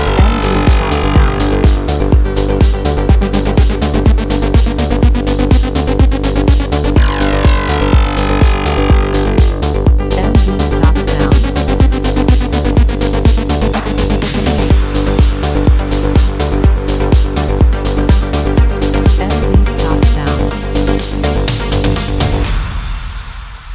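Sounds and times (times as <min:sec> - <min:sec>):
pulse engine: 0:00.0 - 0:23.4.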